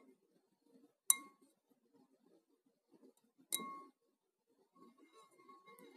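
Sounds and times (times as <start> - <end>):
glass sounds: 1.1 - 1.3, 3.6 - 3.8.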